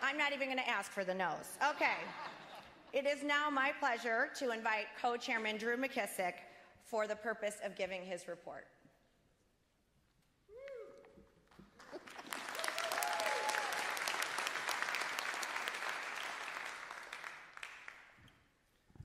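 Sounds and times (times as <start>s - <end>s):
speech: 0.1s - 8.8s
audience applause: 11.7s - 18.2s
whoops and cheers: 12.4s - 14.2s.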